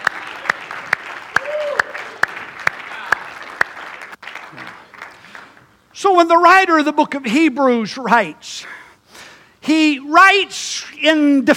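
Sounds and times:
audience clapping hands: 0.0s - 5.8s
speech: 6.0s - 8.8s, 9.7s - 11.5s.

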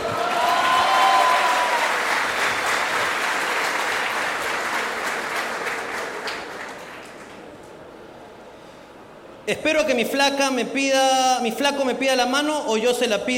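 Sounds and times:
audience applause at a live comedy show: 0.0s - 7.5s
speech: 9.5s - 13.3s.

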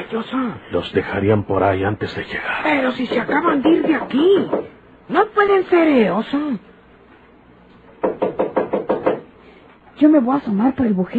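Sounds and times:
speech: 0.1s - 6.7s, 10.0s - 11.1s
knocking on a door: 3.0s - 4.8s, 7.9s - 9.3s.

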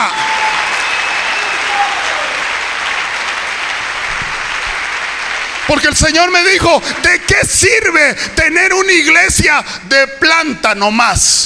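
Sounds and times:
audience applause: 0.0s - 7.6s
speech: 5.7s - 11.4s.

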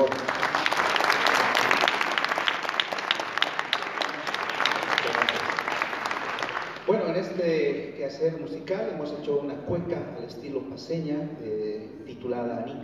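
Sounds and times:
audience applause: 0.0s - 6.9s
speech: 7.4s - 12.8s.

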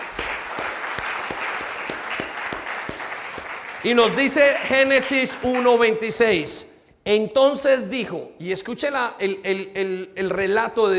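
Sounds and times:
audience applause: 0.0s - 5.7s
speech: 3.8s - 10.9s.

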